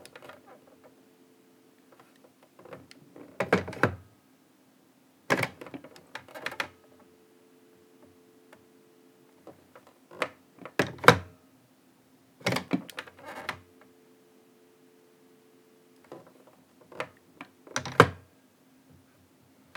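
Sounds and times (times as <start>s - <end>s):
rotary phone handset picked up and put down: 2.7s - 4.0s, 5.3s - 6.8s, 9.5s - 11.3s, 12.4s - 13.6s, 16.1s - 18.2s.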